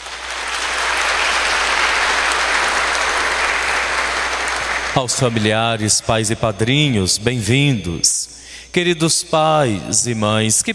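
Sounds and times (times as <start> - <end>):
crowd applauding: 0.0 - 5.8
speech: 5.0 - 10.7.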